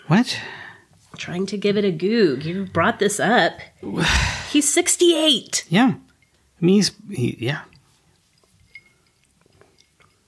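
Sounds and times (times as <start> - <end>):
speech: 0.1 - 0.6, 1.2 - 7.7
ice tinkling in a whiskey glass: 8.6 - 10.2.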